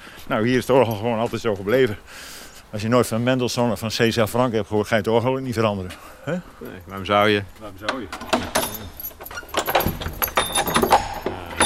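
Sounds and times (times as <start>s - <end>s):
speech: 0.3s - 8.7s
metal gate being opened, clanking and rattling: 7.8s - 11.6s.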